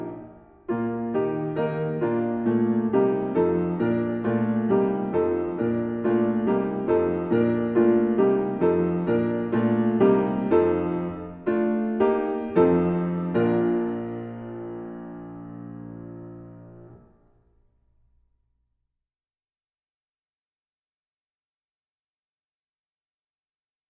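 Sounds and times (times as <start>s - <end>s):
accompaniment in E flat: 0.0s - 17.0s.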